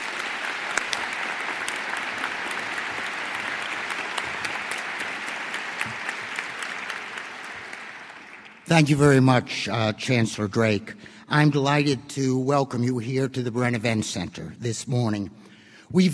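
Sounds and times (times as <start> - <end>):
audience applause welcoming a moderator at a campus event center: 0.0 - 9.6
speech: 8.7 - 16.1.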